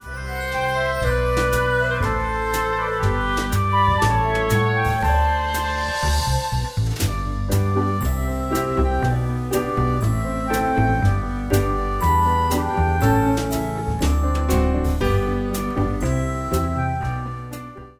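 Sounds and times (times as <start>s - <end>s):
instrumental music: 0.0s - 17.9s.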